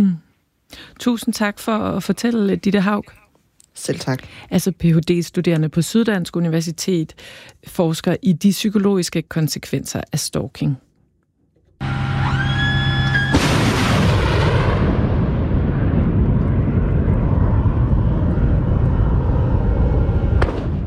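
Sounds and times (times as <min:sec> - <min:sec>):
speech: 0:00.0 - 0:03.2, 0:03.8 - 0:10.9
rising electronic whine before Patriot missile launch: 0:11.8 - 0:14.0, 0:15.5 - 0:20.8
Patriot missile launch blast and roar: 0:11.9 - 0:20.8.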